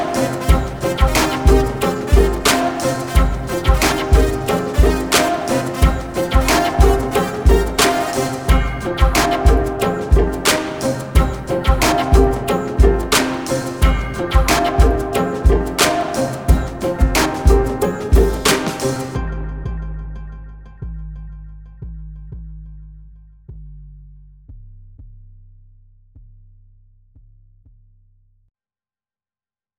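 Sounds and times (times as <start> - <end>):
hip hop music for training: 0.0 - 21.2.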